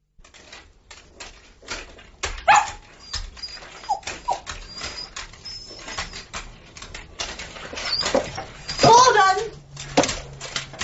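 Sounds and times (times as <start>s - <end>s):
scuffling and shuffling: 0.1s - 10.8s
dog barking and whimpering: 2.4s - 6.3s.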